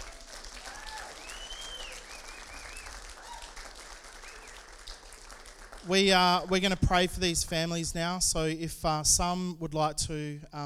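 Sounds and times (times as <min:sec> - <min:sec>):
people cheering and whooping: 0:00.0 - 0:04.6
audience applause: 0:00.0 - 0:06.3
speech: 0:05.8 - 0:10.6.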